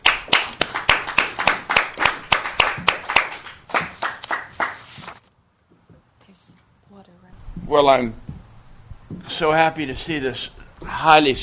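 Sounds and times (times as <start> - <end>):
audience clapping to welcome a speaker: 0.0 - 5.2
speech: 7.7 - 8.2, 9.4 - 11.4.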